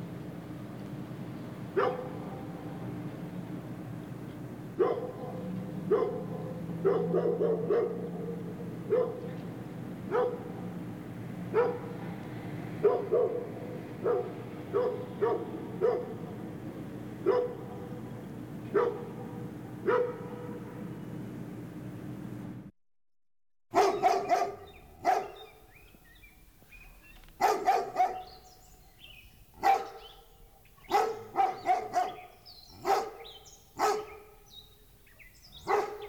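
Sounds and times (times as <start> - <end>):
dog barking: 1.8 - 2.6, 4.8 - 9.4, 10.1 - 10.8, 11.5 - 16.4, 17.2 - 18.0, 18.7 - 20.7, 23.7 - 25.6, 27.4 - 28.5, 29.6 - 34.6, 35.5 - 36.0.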